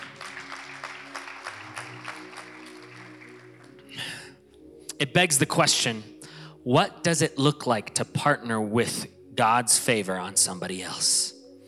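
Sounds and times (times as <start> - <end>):
audience clapping: 0.0 - 4.1
speech: 5.0 - 11.3.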